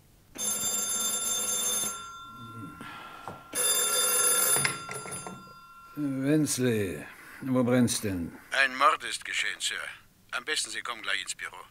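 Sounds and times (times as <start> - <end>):
telephone ringing: 0.4 - 8.0
speech: 6.0 - 11.6.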